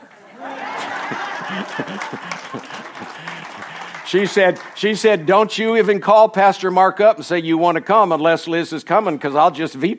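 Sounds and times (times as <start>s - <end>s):
crowd applause: 0.0s - 6.1s
chuckles: 0.5s - 4.1s
speech: 1.1s - 9.9s.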